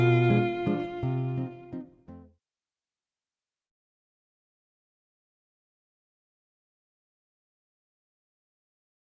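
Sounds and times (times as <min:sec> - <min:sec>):
violin in a duo: 0:00.0 - 0:02.0
guitar in a duo: 0:00.0 - 0:02.3.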